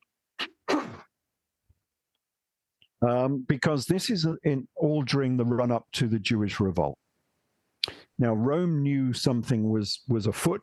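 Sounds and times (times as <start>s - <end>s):
throat clearing: 0.4s - 1.1s
speech: 3.0s - 7.0s, 8.2s - 10.6s.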